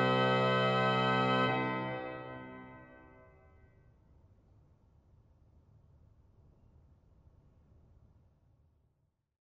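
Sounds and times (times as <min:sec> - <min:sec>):
Sauer organ trumpet 8 stop in Dortmund: 0:00.0 - 0:03.3.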